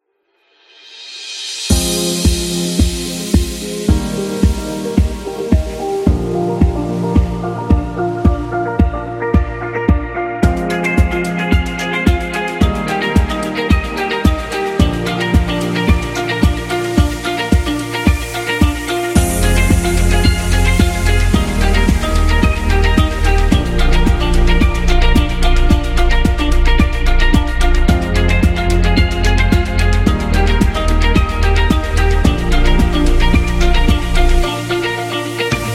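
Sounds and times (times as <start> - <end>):
fashion commercial music: 1.7 - 35.7.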